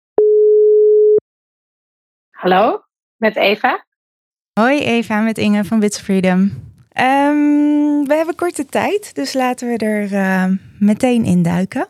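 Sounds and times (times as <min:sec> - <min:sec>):
telephone call tone while phoning someone: 0:00.2 - 0:01.2
speech: 0:02.4 - 0:03.9, 0:04.6 - 0:11.8.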